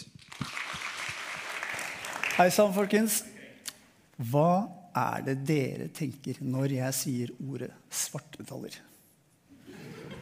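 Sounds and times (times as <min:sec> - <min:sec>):
audience applause: 0:00.0 - 0:02.6
speech: 0:02.4 - 0:03.3, 0:04.2 - 0:08.9.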